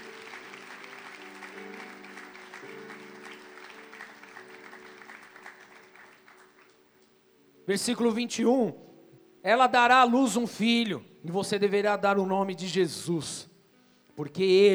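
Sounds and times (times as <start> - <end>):
audience applause: 0.0 - 7.2
speech: 7.7 - 8.8, 9.4 - 13.5, 14.2 - 14.7.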